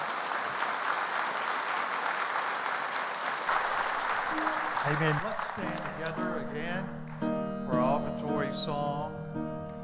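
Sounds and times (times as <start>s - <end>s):
church congregation applause welcoming a guest speaker: 0.0s - 7.3s
speech: 4.4s - 7.2s, 7.8s - 9.5s.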